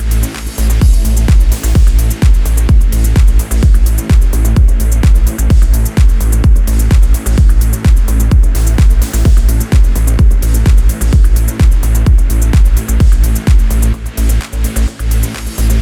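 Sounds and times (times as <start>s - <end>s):
progressive trance percussion: 0.0s - 15.7s.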